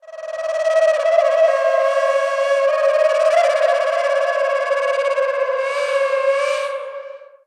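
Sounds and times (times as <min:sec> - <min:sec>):
processed ocarina: 0:00.0 - 0:07.4.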